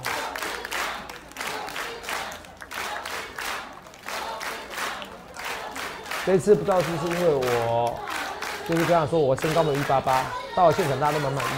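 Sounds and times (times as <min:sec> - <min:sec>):
large crowd at an event cheering and clapping: 0:00.0 - 0:11.5
speech: 0:06.3 - 0:08.1, 0:08.7 - 0:11.5.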